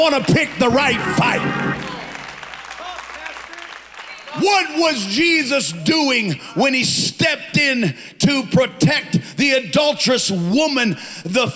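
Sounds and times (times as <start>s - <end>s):
speech: 0.0s - 2.0s, 4.4s - 11.5s
audience clapping hands: 0.0s - 4.8s.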